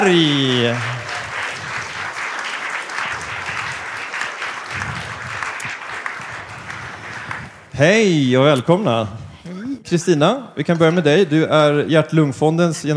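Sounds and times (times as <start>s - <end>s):
speech: 0.0s - 1.0s, 7.8s - 9.2s, 9.9s - 12.9s
audience applause welcoming guests at a talk on heart research: 0.0s - 7.7s.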